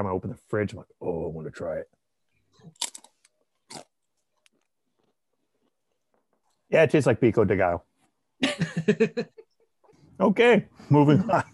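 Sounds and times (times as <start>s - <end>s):
speech: 0.0s - 3.0s, 6.7s - 9.4s, 10.2s - 11.5s
chewing crackles: 2.6s - 6.1s
ghost pepper chip bitten and crunched: 2.8s - 4.6s.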